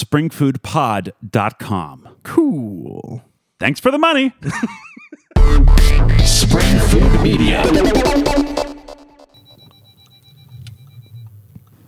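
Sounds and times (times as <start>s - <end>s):
speech: 0.0s - 8.7s
laughter: 4.4s - 5.5s
high steady tone: 5.4s - 11.4s
car warning alert for bottoming out: 9.3s - 11.8s.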